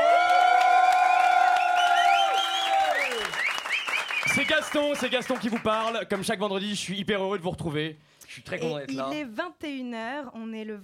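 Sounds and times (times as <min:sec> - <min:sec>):
live audience applauding: 0:00.0 - 0:06.5
speech: 0:04.3 - 0:10.8.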